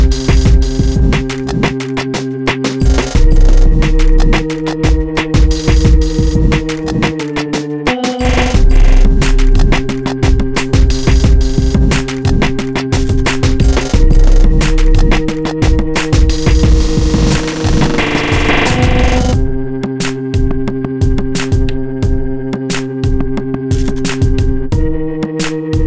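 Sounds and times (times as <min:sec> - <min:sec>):
sci drama loading beat: 0:00.0 - 0:25.8.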